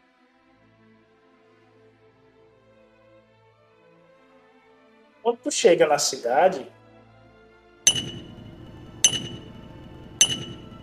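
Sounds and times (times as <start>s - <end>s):
speech: 5.2s - 6.8s
sharp metallic clinks of artisans hammering: 7.9s - 10.8s.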